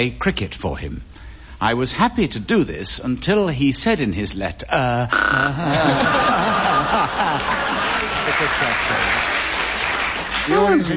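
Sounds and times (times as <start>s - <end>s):
speech: 0.0s - 9.3s, 10.4s - 10.9s
people chuckling: 5.2s - 9.2s
crowd clapping: 6.5s - 10.9s.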